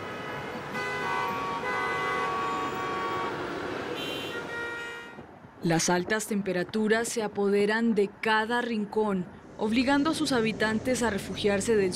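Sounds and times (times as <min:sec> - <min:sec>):
car horns honking in busy street traffic: 0:00.0 - 0:05.3
speech: 0:05.6 - 0:11.9.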